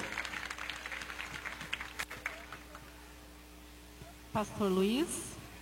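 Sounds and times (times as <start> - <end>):
applause: 0.0 - 3.0
speech: 4.4 - 5.3.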